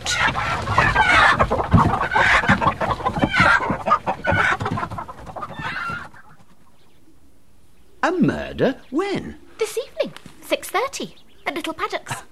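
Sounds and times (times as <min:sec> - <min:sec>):
hen clucking: 0:00.0 - 0:12.3
speech: 0:08.1 - 0:09.4, 0:10.8 - 0:12.2.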